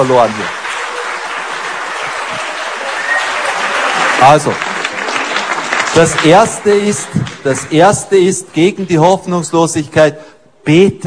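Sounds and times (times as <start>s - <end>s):
speech: 0.0s - 0.6s, 4.2s - 4.7s, 6.0s - 11.0s
audience clapping and slapping at mosquitoes: 0.0s - 8.1s.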